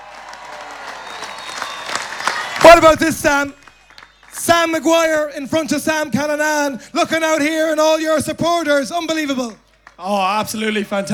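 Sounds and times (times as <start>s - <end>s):
crowd applause at a Mayo football homecoming in Ballina: 0.0s - 5.2s, 9.6s - 10.8s
speech: 2.8s - 3.6s, 4.4s - 11.1s.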